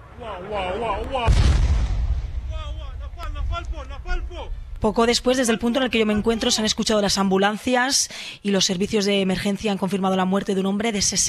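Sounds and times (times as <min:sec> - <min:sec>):
speech: 0:00.2 - 0:01.7, 0:04.3 - 0:11.2
Iranian bomb impact explosion in Tel Aviv: 0:01.2 - 0:06.8.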